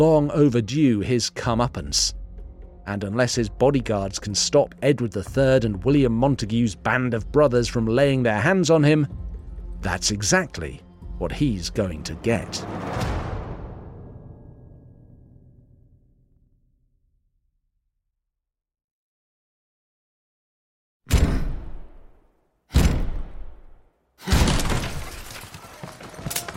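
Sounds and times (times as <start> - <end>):
speech: 0.0 - 2.2, 2.9 - 9.2, 9.8 - 13.2
heavy splintering crash: 24.2 - 26.2.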